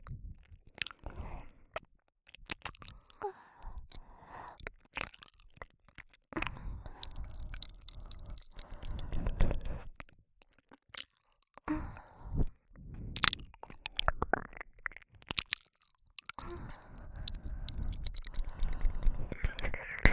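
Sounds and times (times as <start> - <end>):
ear licking sounds on the right: 2.4 - 3.2, 4.9 - 11.7, 13.1 - 20.1.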